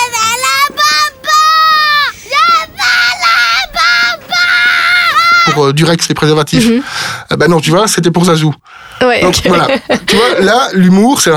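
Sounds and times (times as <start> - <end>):
child screaming in a commercial: 0.0 - 5.6
speech: 5.6 - 11.3.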